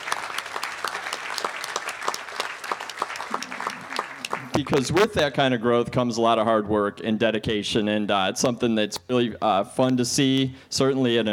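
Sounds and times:
round of applause in a tent: 0.0 - 5.1
speech: 4.6 - 11.3.

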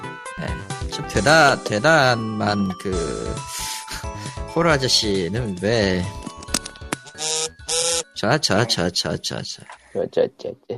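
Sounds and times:
speech: 0.2 - 3.7, 4.6 - 6.2, 8.2 - 10.7
phone vibrating: 7.2 - 8.2.

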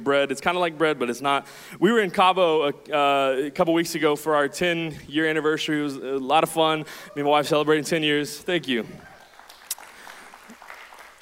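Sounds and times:
speech: 0.0 - 9.1
audience applauding: 8.8 - 11.2.

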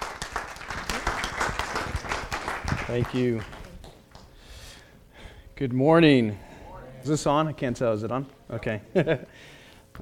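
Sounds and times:
audience applause welcoming two missionary speakers: 0.0 - 3.9
speech: 2.9 - 3.6, 5.6 - 10.0.

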